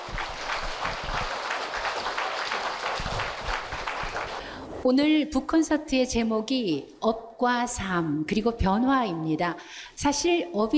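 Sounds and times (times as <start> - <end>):
audience applause: 0.0 - 4.8
speech: 4.8 - 10.7.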